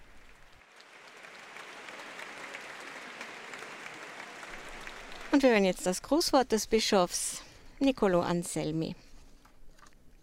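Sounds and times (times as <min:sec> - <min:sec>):
audience applause: 0:00.0 - 0:05.9
speech: 0:05.3 - 0:09.0.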